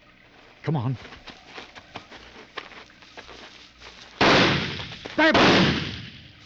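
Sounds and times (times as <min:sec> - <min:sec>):
soft rustling in tall grass: 0:00.3 - 0:05.3
speech: 0:00.6 - 0:01.4, 0:05.2 - 0:05.8
gunshots during a hunt in tall grass: 0:04.2 - 0:06.4.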